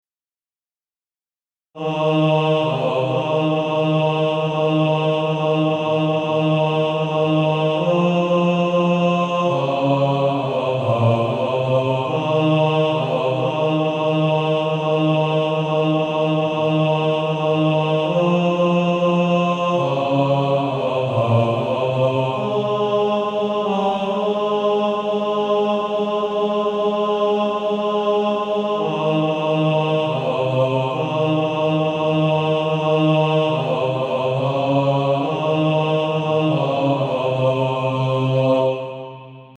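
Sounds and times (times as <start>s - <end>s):
male choir bass singing: 1.8s - 39.5s.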